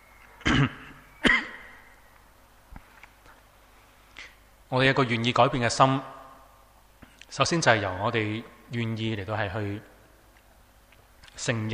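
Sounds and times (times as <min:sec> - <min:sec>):
person clearing throat from dry weather and long talking: 0:00.4 - 0:01.8
speech: 0:00.6 - 0:00.8, 0:04.7 - 0:06.2, 0:07.3 - 0:09.9, 0:11.4 - 0:11.7.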